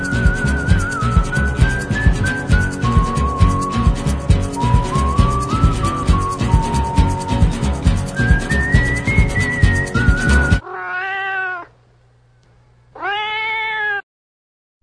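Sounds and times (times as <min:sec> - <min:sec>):
rhythmic whistled tones: 0:00.0 - 0:10.6
cat meowing in a radio drama: 0:10.6 - 0:11.7, 0:13.0 - 0:14.0.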